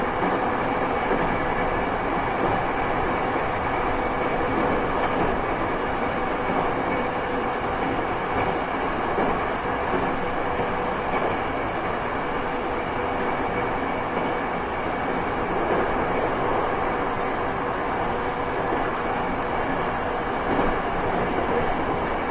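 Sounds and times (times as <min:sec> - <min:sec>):
Yokosuka Sobu Rapid E217 train: 0:00.0 - 0:22.2.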